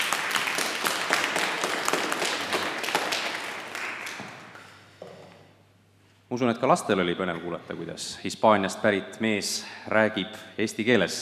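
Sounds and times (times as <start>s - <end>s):
audience applause: 0.0s - 4.6s
speech: 6.3s - 11.2s.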